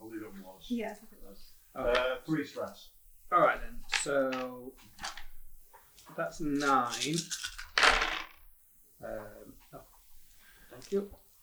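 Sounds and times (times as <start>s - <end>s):
speech: 0.6s - 5.2s, 6.2s - 7.5s, 9.0s - 9.9s, 10.8s - 11.2s
dice rolled for a tabletop game: 6.5s - 8.5s.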